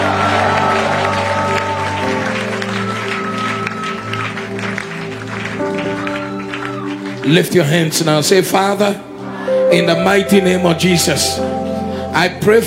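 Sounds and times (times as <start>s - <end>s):
audience shouting praise: 0.0s - 7.3s
audience clapping: 0.0s - 8.3s
speech: 7.3s - 9.1s, 9.7s - 11.5s, 12.2s - 12.6s.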